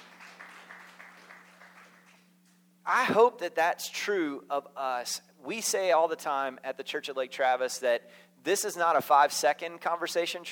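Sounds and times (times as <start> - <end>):
audience clapping: 0.0 - 2.6
faint low hum: 0.0 - 10.5
speech: 2.9 - 10.5.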